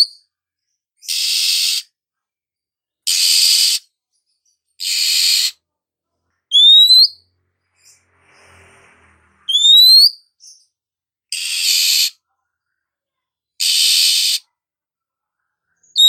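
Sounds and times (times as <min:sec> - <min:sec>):
female Oriental magpie-robin calling with rising whistled slurs: 0:01.0 - 0:01.9, 0:03.1 - 0:03.9, 0:04.8 - 0:05.5, 0:06.5 - 0:07.2, 0:09.5 - 0:10.7, 0:11.3 - 0:12.2, 0:13.6 - 0:14.4.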